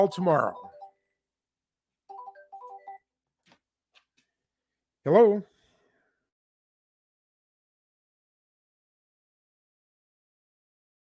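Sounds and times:
speech: 0.0s - 0.6s, 5.0s - 5.5s
telephone ringing with an incoming call, electronic ringtone: 0.0s - 1.0s, 2.1s - 3.0s.

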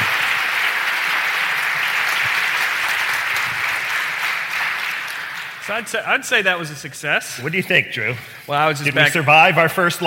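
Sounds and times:
live studio audience applauding at an Educators Day event: 0.0s - 6.0s
speech: 5.7s - 10.0s.

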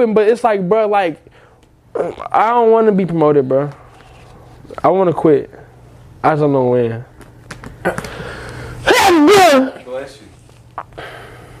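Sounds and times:
speech: 0.0s - 1.4s, 2.0s - 3.8s, 4.7s - 5.6s, 6.2s - 7.1s, 7.8s - 8.2s
person sneezing: 7.8s - 9.7s.

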